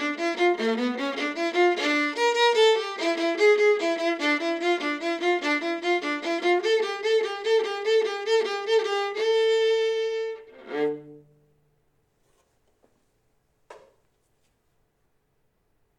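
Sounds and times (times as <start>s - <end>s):
viola playing a carol: 0.0s - 11.5s.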